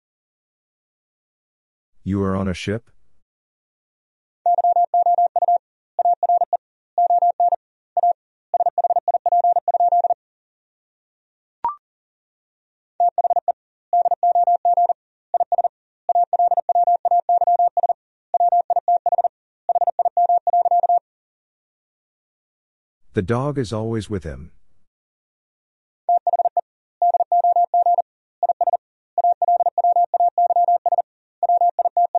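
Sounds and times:
speech: 2.0s - 3.0s, 23.2s - 24.6s
fast Morse code tones at 40 wpm: 4.5s - 10.2s, 13.0s - 21.0s, 26.1s - 32.1s.

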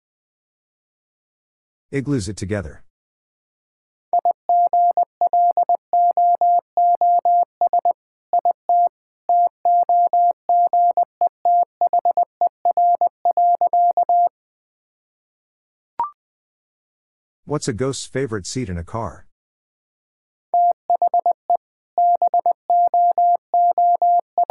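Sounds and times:
speech: 1.9s - 2.9s, 17.5s - 19.3s
Morse code tone keying dots and dashes at 20 wpm: 4.2s - 14.3s, 20.6s - 24.4s.

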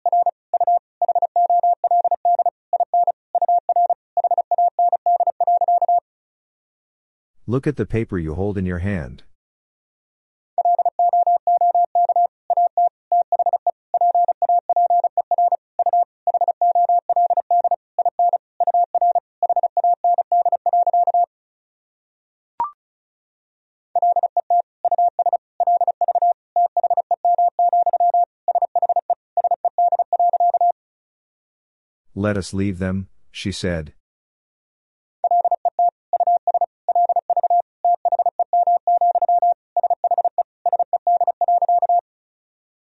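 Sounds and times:
fast Morse code tones at 35 words per minute: 0.0s - 6.0s, 10.6s - 21.3s, 24.0s - 30.7s, 35.2s - 42.0s
speech: 7.5s - 9.3s, 32.2s - 34.0s.

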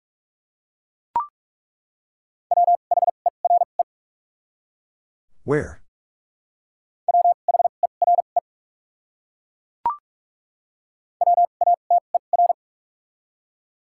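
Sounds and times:
Morse code word tones at 45 wpm: 2.5s - 3.7s, 7.1s - 8.4s, 11.2s - 12.6s
speech: 5.5s - 5.8s.

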